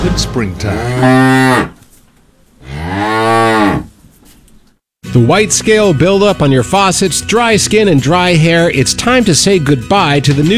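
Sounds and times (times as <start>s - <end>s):
speech: 0.1s - 1.8s, 5.2s - 10.5s
cow mooing: 0.6s - 1.8s, 2.6s - 3.9s.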